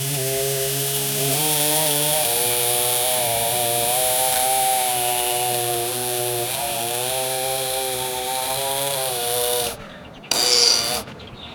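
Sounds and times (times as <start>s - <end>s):
scythe cutting through grass: 0.0s - 11.1s.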